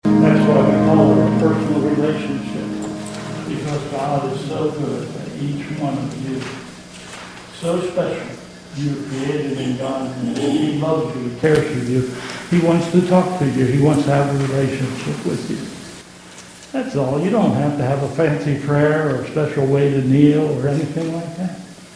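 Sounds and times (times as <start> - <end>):
person giving closing comments at a church service: 0.0 - 6.9, 7.5 - 15.8, 16.7 - 21.7
congregation singing a chorus at a church service: 0.0 - 15.9.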